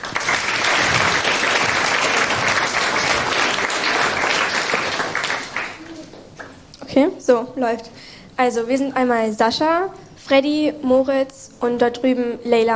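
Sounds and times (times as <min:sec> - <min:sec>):
audience applause: 0:00.0 - 0:06.6
speech: 0:07.0 - 0:12.7.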